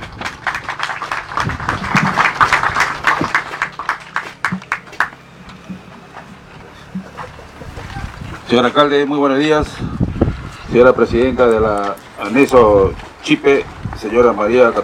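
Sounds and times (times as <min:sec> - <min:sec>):
audience applause: 0:00.0 - 0:05.3
speech: 0:08.5 - 0:10.0, 0:10.7 - 0:14.8.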